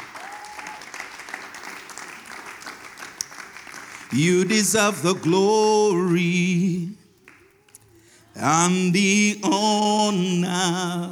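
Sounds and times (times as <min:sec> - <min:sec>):
audience hand clapping: 0:00.0 - 0:05.2, 0:07.2 - 0:07.6
speech: 0:04.1 - 0:07.0, 0:08.4 - 0:11.1.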